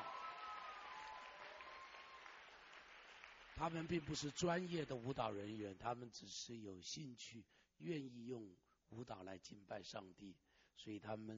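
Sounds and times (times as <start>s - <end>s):
roomful of people clapping hands in applause: 0.0s - 5.3s
speech: 3.6s - 11.3s.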